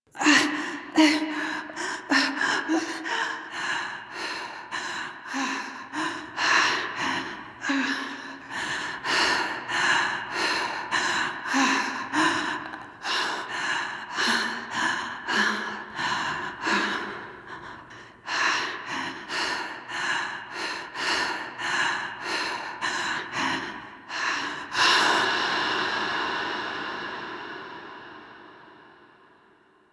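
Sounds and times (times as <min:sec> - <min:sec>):
landing breaths: 0:00.2 - 0:29.7.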